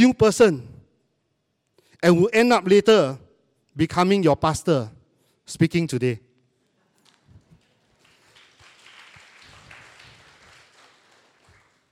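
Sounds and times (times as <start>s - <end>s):
speech: 0.0s - 0.7s, 2.0s - 3.2s, 3.8s - 6.2s
audience clapping: 7.0s - 11.8s.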